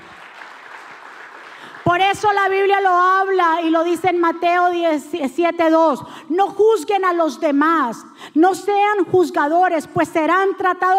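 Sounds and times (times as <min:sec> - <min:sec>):
audience applause: 0:00.0 - 0:01.9
speech: 0:01.9 - 0:10.9.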